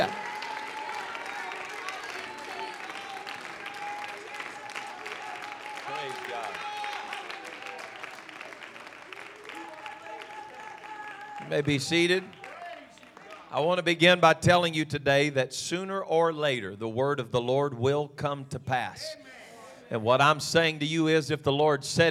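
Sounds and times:
audience clapping hands: 0.0s - 13.9s
speech: 11.5s - 12.4s, 13.5s - 22.0s.

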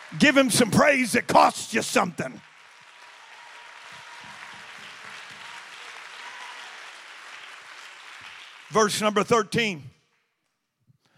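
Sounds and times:
audience clapping hands: 0.0s - 10.5s
speech: 0.1s - 2.5s, 8.7s - 9.9s.

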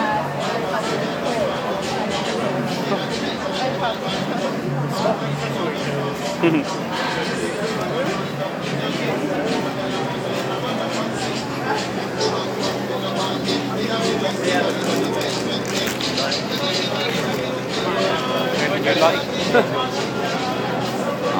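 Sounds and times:
laughter: 0.0s - 21.3s
overlapping voices and chatter on Brick Lane: 0.0s - 21.3s.

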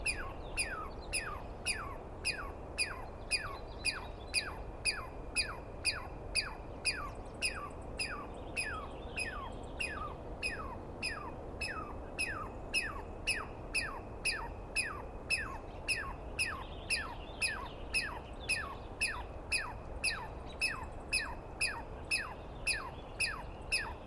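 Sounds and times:
Douglas squirrel screeching: 0.0s - 24.0s.

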